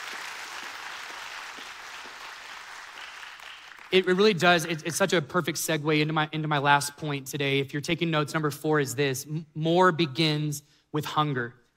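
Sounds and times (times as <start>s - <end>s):
audience applause: 0.0s - 4.0s
speech: 3.9s - 11.6s.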